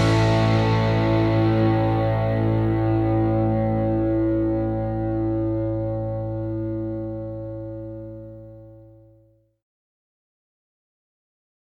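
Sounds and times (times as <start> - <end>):
jingle: 0.0 - 8.0.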